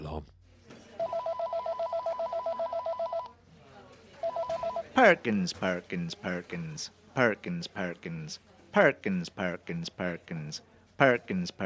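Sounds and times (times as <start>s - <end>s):
faint voices murmuring: 0.5s - 11.6s
telephone ringing with electronic trill: 1.0s - 3.4s, 4.2s - 5.0s
speech: 5.0s - 11.6s.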